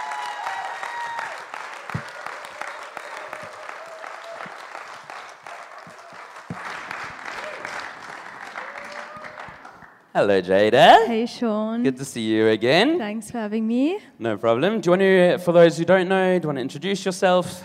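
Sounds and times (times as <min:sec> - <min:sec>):
cheers and whoops: 0:00.0 - 0:09.8
audience applause: 0:00.0 - 0:10.0
speech: 0:10.2 - 0:17.6.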